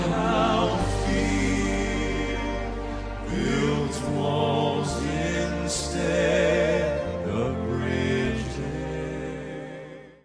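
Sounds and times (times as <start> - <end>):
vocal band quartet singing: 0.0 - 10.2.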